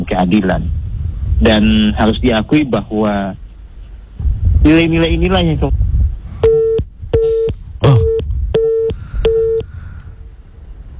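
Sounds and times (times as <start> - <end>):
speech: 0.1 - 0.8, 1.4 - 3.4, 4.6 - 5.8, 7.8 - 8.1
phone line beeps after a call drops: 6.4 - 9.7.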